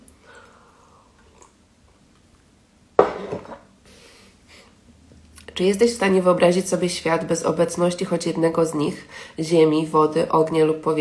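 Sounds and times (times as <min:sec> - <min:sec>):
person drinking water: 0:00.2 - 0:02.1
glass being picked up or set down: 0:03.0 - 0:03.7
speech: 0:05.6 - 0:10.9.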